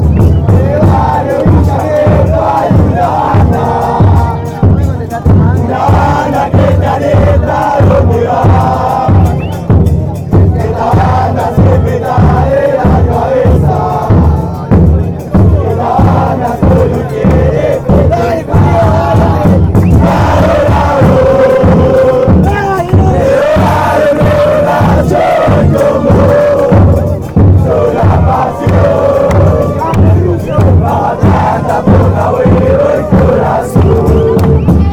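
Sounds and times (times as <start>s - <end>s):
Atlanta fans chanting: 0.0s - 34.9s.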